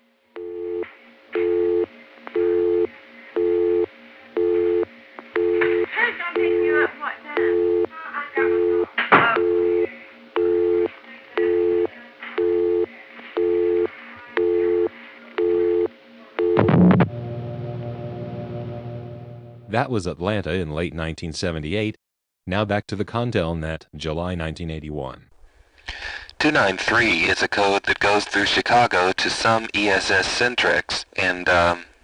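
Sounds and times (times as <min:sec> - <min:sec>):
telephone busy signal through a Western Electric PBX: 0:00.4 - 0:00.8, 0:01.4 - 0:17.5
speech: 0:19.8 - 0:25.3, 0:25.9 - 0:31.9.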